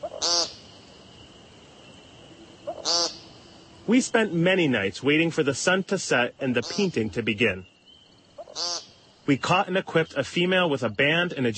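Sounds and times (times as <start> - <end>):
American woodcock giving nasal buzzy peent calls: 0.0 - 3.9, 6.5 - 9.4
speech: 3.9 - 7.7, 9.3 - 11.5.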